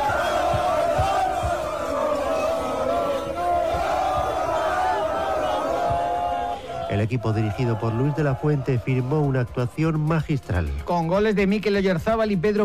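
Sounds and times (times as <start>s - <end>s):
football fans chanting and shouting in unison: 0.0s - 12.6s
speech: 6.9s - 12.6s.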